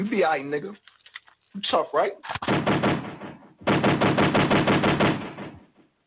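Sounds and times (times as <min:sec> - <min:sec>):
speech: 0:00.1 - 0:00.9, 0:01.5 - 0:02.7
automatic gunfire sound effect in a played song: 0:02.4 - 0:05.6.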